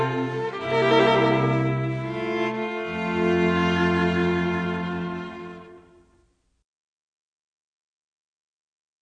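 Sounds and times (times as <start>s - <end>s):
festive string ensemble: 0.0s - 6.3s.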